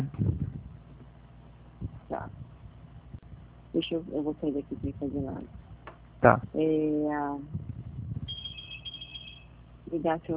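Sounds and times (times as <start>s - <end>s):
speech: 3.8s - 5.6s, 6.2s - 7.7s, 9.9s - 10.3s
intercom ringing: 8.2s - 9.6s
thin steady high tone: 8.3s - 9.6s.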